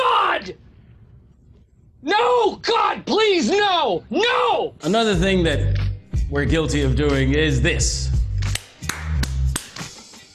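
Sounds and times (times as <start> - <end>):
speech: 0.4 - 0.7, 2.0 - 8.2
hands clapped together once: 8.4 - 10.0.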